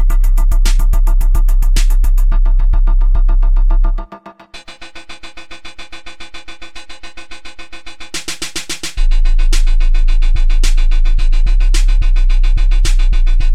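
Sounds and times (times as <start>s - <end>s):
bass waves: 0.0s - 4.1s, 9.0s - 13.5s.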